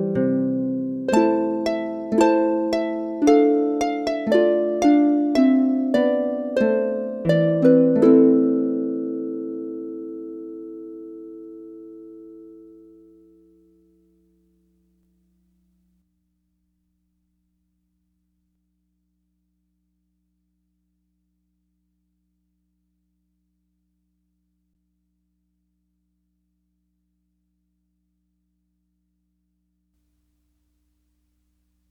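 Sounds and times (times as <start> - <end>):
solo lever harp gavotte: 0.0 - 13.4.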